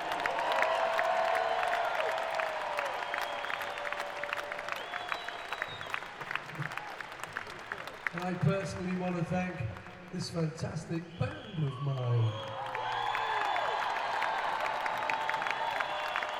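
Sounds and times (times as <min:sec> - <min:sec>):
large crowd cheering and applauding: 0:00.0 - 0:16.3
piercing whistles: 0:02.9 - 0:06.2, 0:11.0 - 0:13.5
speech: 0:08.3 - 0:12.6.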